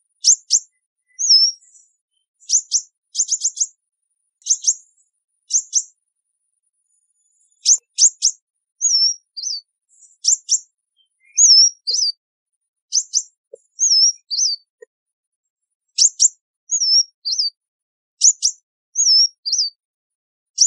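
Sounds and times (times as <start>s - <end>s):
sunbird calling: 0.2s - 1.7s, 2.4s - 3.7s, 4.4s - 4.8s, 5.5s - 5.9s, 7.6s - 12.2s, 12.9s - 14.7s, 16.0s - 17.6s, 18.2s - 19.8s.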